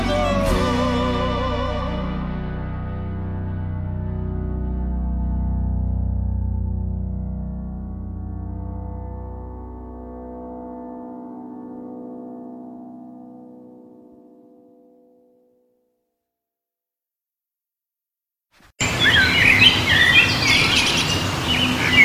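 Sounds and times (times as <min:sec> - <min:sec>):
low steady harmonic tone: 0:00.0 - 0:15.8
dense chorus of birds chirping and singing: 0:18.8 - 0:22.0.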